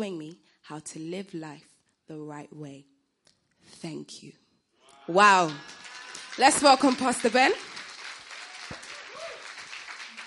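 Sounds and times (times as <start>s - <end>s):
speech: 0.0s - 2.9s, 3.6s - 4.4s, 5.1s - 5.8s, 6.4s - 7.8s
audience applause: 5.4s - 10.2s.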